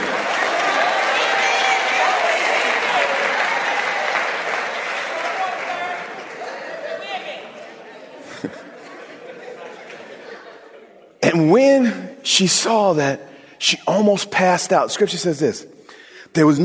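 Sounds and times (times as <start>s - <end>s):
scattered cheers: 0.0s - 7.7s
audience applause: 0.0s - 8.5s
laughter: 5.4s - 11.2s
speech: 12.4s - 16.6s.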